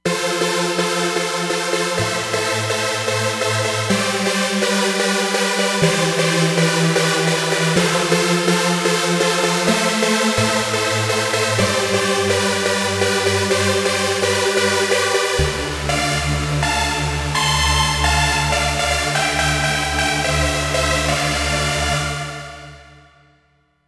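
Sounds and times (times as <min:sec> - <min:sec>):
trance music: 0:00.0 - 0:23.2.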